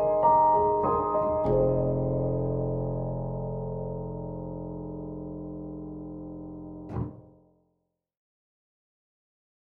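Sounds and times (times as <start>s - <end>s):
warm and emotional grand piano rhapsody: 0.0s - 7.2s.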